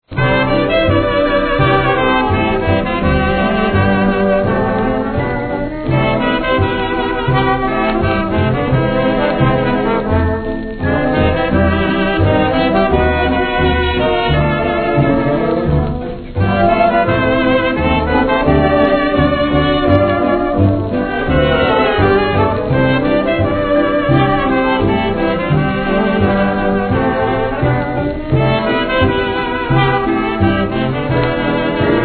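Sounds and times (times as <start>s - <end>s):
symphonic jazz orchestra: 0.0s - 32.0s.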